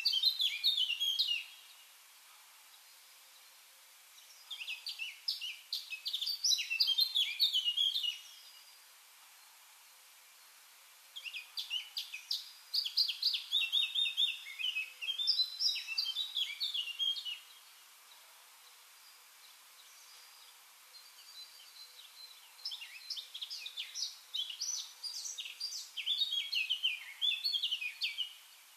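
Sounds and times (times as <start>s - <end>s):
Eurasian blackcap song: 0.0s - 2.0s, 2.6s - 28.7s.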